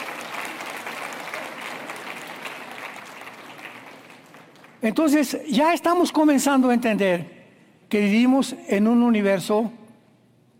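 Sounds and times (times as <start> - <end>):
audience applause: 0.0 - 4.8
speech: 4.8 - 9.8.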